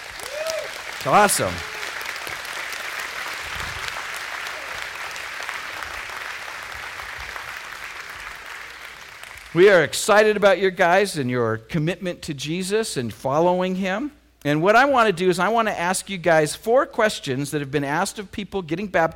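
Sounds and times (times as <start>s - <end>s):
audience clapping: 0.0s - 9.8s
speech: 1.0s - 1.7s, 9.5s - 19.1s.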